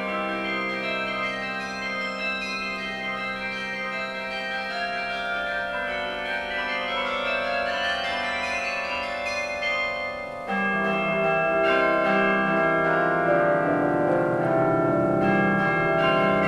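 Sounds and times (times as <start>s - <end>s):
carillon concert: 0.0s - 16.4s.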